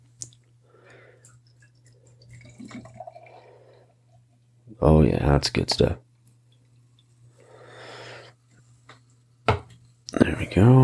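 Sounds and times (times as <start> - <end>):
low constant hum: 0.0 - 10.8
beer pouring from a can: 1.3 - 4.4
speech: 4.8 - 6.0.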